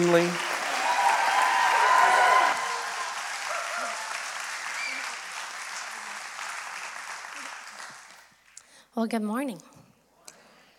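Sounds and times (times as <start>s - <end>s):
speech: 0.0s - 0.5s, 9.0s - 9.8s
church congregation clapping during a Mother's Day service: 0.0s - 8.6s.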